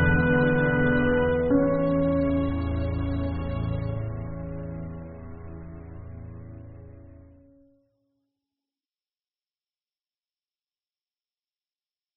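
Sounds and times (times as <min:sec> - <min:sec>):
slow euphoric American orchestral music: 0:00.0 - 0:07.7.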